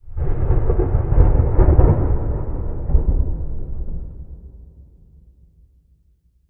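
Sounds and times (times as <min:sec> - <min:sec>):
thunder: 0:00.0 - 0:04.9.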